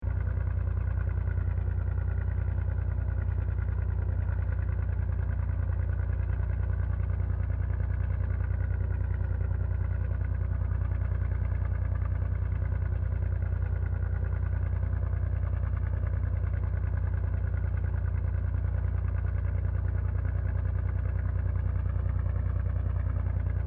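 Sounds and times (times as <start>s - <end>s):
distant Japanese tugboat idling: 0.0s - 23.6s.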